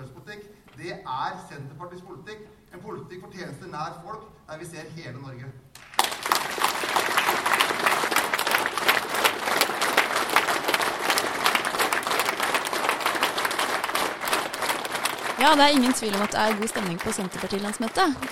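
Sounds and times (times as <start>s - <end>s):
speech: 0.8s - 5.6s, 15.4s - 18.2s
applause after a speech: 5.8s - 18.2s.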